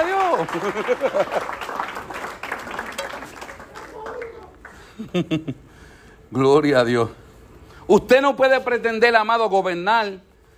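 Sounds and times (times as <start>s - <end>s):
applause: 0.0s - 5.0s
laughter: 0.2s - 1.8s, 4.7s - 5.7s
speech: 0.4s - 1.7s, 5.0s - 5.7s, 6.3s - 7.2s, 7.9s - 10.3s.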